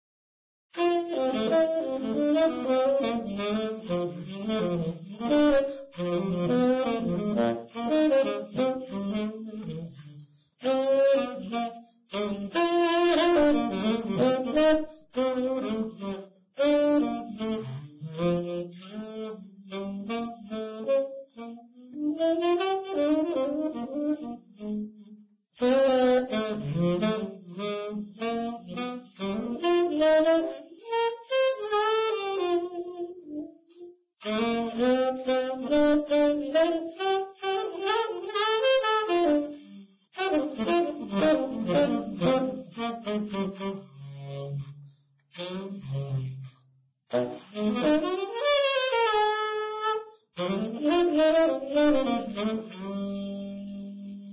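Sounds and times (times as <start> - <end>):
saxophone: 0.7 - 54.3.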